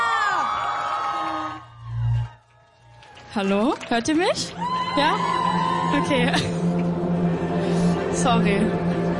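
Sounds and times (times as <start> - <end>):
audience applause: 0.0 - 7.0
speech: 3.3 - 6.8, 8.2 - 9.0.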